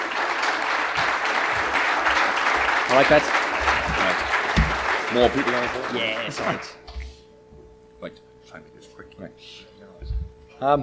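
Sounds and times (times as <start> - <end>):
audience applause: 0.0 - 6.8
speech: 2.9 - 3.4, 5.1 - 6.8, 8.0 - 9.7, 10.6 - 10.8.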